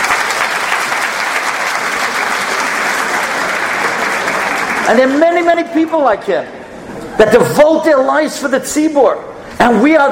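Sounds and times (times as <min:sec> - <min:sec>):
audience applause: 0:00.0 - 0:05.7
speech: 0:04.9 - 0:06.6, 0:07.2 - 0:10.0.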